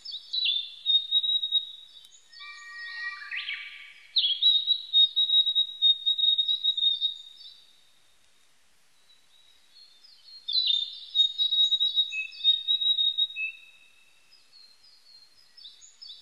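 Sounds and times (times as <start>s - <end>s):
Narcissus flycatcher singing loud high whistled phrases: 0.0s - 7.5s, 10.2s - 13.9s.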